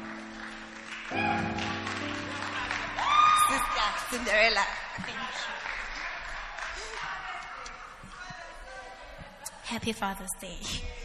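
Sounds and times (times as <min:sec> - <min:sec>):
audience clapping hands: 0:00.0 - 0:08.5
speech: 0:03.9 - 0:05.8, 0:09.7 - 0:11.0.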